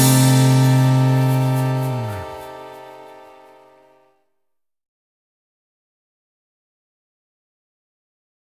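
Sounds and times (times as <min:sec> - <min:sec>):
big band playing samba: 0:00.0 - 0:03.6.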